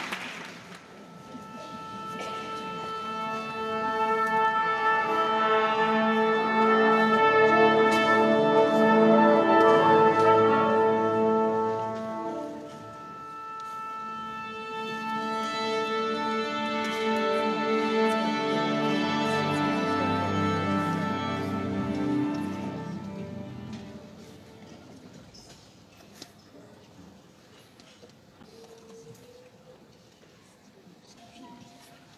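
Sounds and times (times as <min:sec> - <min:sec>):
instrument tuning: 0:00.8 - 0:23.9.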